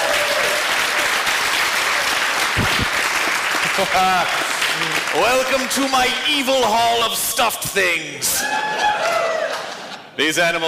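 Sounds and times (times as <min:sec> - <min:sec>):
audience applauding a volunteer: 0:00.0 - 0:06.5, 0:08.5 - 0:10.0
speech: 0:03.8 - 0:09.3, 0:10.2 - 0:10.6.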